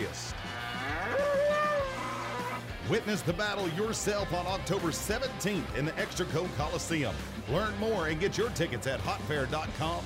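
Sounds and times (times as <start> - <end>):
Mexican fighting bull bellowing at a freestyle bullfighting rodeo: 0.5 - 2.7
speech: 2.9 - 10.0.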